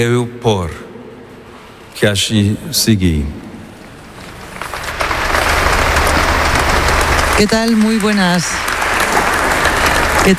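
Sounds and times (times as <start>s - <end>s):
speech: 0.0s - 0.9s, 2.0s - 3.5s, 7.4s - 8.7s
audience applause after a speech: 4.3s - 10.3s.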